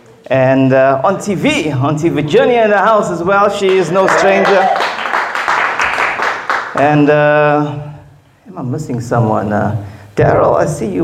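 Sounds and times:
speech: 0.3s - 4.9s, 6.8s - 7.9s, 8.5s - 11.0s
audience clapping to welcome guests: 3.6s - 7.1s.

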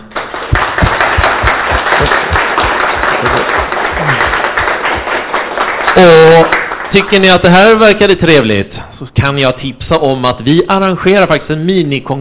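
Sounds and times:
audience applause: 0.0s - 7.5s
speech: 6.0s - 12.1s.

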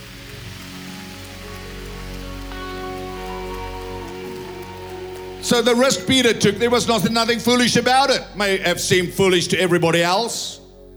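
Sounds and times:
audience clapping: 0.0s - 8.2s
sustained musical tones: 0.1s - 10.9s
speech: 5.4s - 10.6s.

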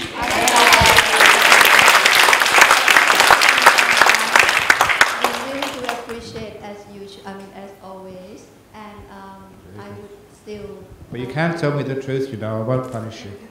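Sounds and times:
audience applause: 0.0s - 6.2s
speech: 11.4s - 13.5s.

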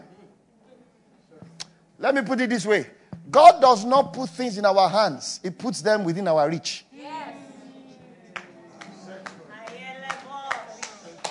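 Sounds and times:
speech: 2.0s - 6.9s
audience clapping: 8.3s - 11.2s.

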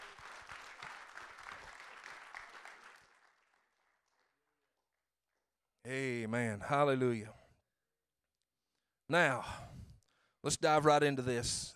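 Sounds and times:
audience hand clapping: 0.0s - 4.9s
speech: 5.9s - 7.4s, 9.1s - 9.7s, 10.4s - 11.7s.

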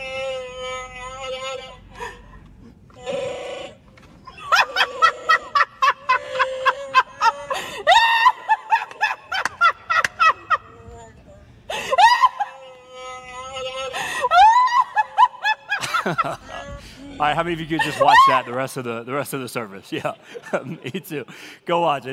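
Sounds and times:
noise-making laughing mask letting out cackle-like laughs: 3.0s - 11.1s, 11.8s - 18.4s
speech: 17.2s - 22.1s.

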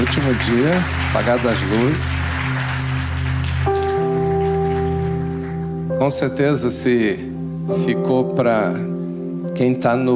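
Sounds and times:
crowd applause: 0.0s - 5.6s
sustained keyboard chords: 0.0s - 10.1s
speech: 0.1s - 2.2s, 6.0s - 8.9s, 9.6s - 10.1s.

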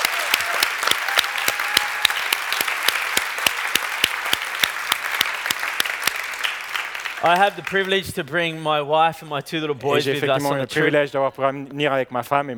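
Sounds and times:
audience clapping: 0.0s - 8.6s
speech: 7.2s - 12.5s.

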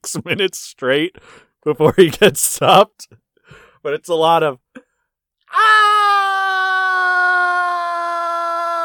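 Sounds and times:
speech: 0.1s - 4.6s
Victor Von Doom screaming while struck by lightning in a movie: 5.5s - 8.8s.

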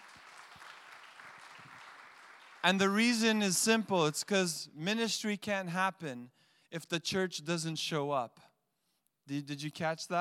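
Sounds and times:
room full of people applauding together: 0.0s - 2.9s
speech: 2.6s - 8.5s, 9.3s - 10.1s.

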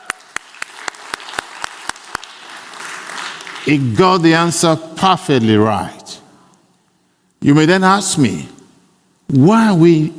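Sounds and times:
audience applause: 0.0s - 3.9s
speech: 3.6s - 6.0s, 7.4s - 8.6s, 9.3s - 10.1s.

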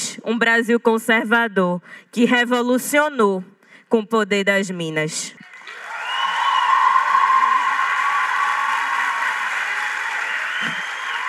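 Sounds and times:
speech: 0.2s - 5.8s
standing ovation from packed auditorium: 5.4s - 11.2s.

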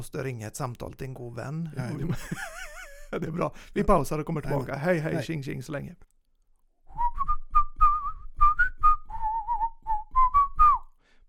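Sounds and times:
speech: 0.0s - 6.2s
laughter: 1.8s - 3.6s
whistled pause music: 6.9s - 11.0s.

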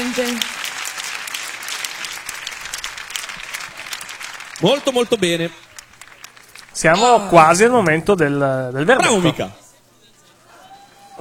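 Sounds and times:
audience applause: 0.0s - 8.3s
speech: 0.1s - 0.6s, 4.6s - 5.6s, 6.8s - 9.6s.

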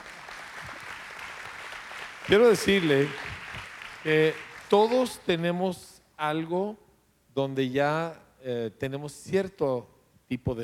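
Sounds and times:
audience applause: 0.0s - 5.2s
speech: 2.3s - 3.3s, 4.0s - 6.8s, 7.4s - 10.6s.

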